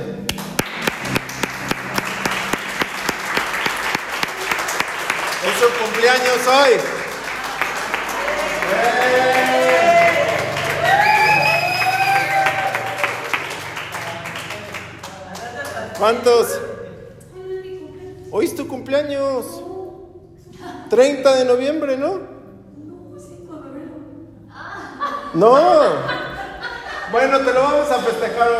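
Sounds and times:
audience applause: 0.4 - 15.8
speech: 5.6 - 7.0, 8.7 - 9.6, 16.0 - 16.7, 18.3 - 19.7, 20.9 - 22.3, 25.3 - 26.2, 27.1 - 28.5
laughter: 15.2 - 17.2, 24.6 - 28.5.

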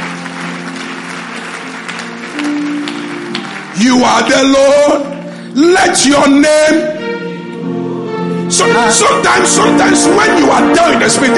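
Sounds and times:
audience clapping in praise: 0.0 - 5.5
sustained instrumental tones: 0.0 - 11.3
speech: 3.8 - 7.0, 8.5 - 11.3.

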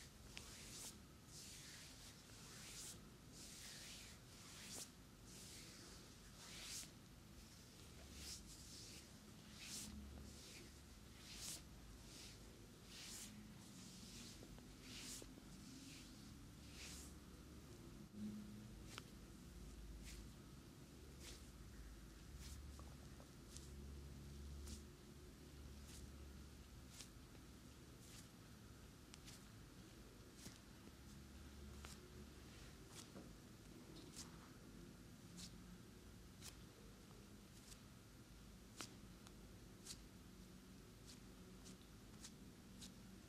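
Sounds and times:
soft brushing strokes of a head and neck massage: 0.0 - 43.2.

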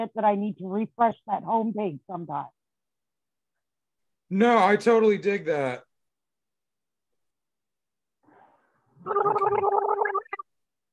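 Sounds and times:
speech: 0.0 - 2.6, 4.3 - 5.9, 9.0 - 10.1
person gargling coffee: 9.0 - 10.4.

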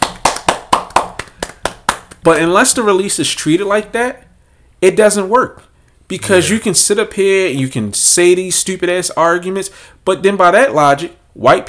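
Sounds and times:
round of applause: 0.0 - 2.2
speech: 2.2 - 11.6.

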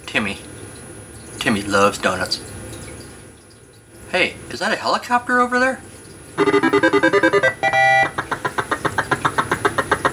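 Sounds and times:
speech: 1.4 - 2.5, 4.1 - 7.5
zippy video game start music: 6.4 - 10.1.

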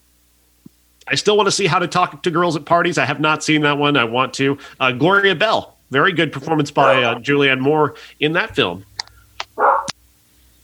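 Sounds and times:
speech: 1.1 - 8.9
dog making noise in the room: 6.8 - 7.2, 9.5 - 10.0.

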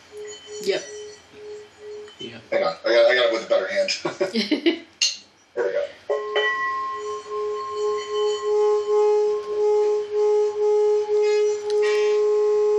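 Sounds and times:
large wind chime ringing like gong: 0.0 - 3.6, 6.1 - 12.2
speech: 0.6 - 1.0, 2.6 - 4.9.

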